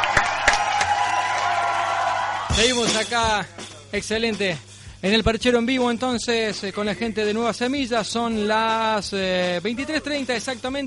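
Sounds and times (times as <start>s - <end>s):
live audience applause: 0.0s - 2.6s
speech: 2.6s - 10.8s.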